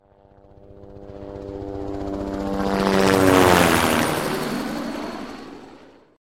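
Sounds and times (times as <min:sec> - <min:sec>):
helicopter: 0:00.0 - 0:06.2.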